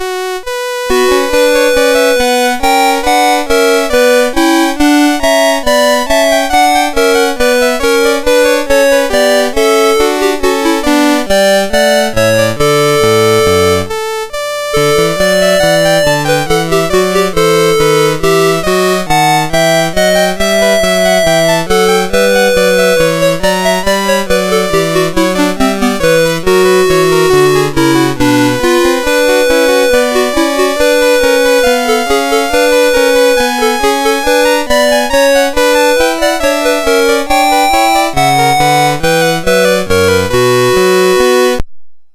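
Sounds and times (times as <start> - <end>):
chiptune bourree on MOS6581R2 chip: 0.0 - 41.7.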